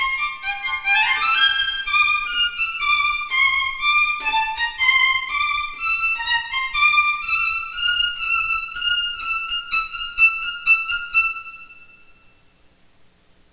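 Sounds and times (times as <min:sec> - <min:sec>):
violin: 0:00.0 - 0:12.3.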